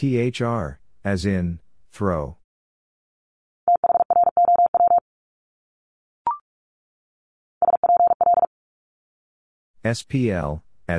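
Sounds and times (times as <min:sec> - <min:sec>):
speech: 0:00.0 - 0:02.4, 0:09.8 - 0:10.9
Morse code beeps at 45 wpm: 0:03.7 - 0:05.0, 0:07.6 - 0:08.5.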